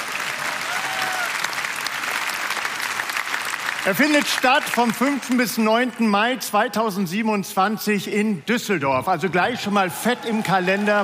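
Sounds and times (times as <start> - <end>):
audience applause: 0.0 - 6.4, 9.4 - 11.0
speech: 3.8 - 11.0.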